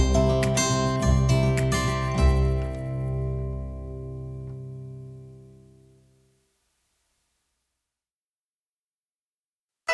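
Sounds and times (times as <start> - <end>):
American folk instrumental music: 0.0 - 5.3.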